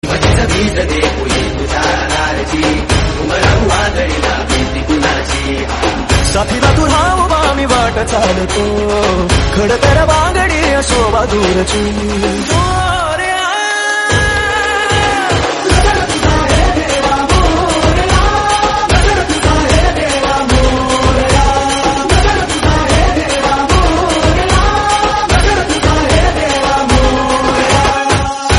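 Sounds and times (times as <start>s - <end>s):
Marathi DJ dance music: 0.0s - 28.5s.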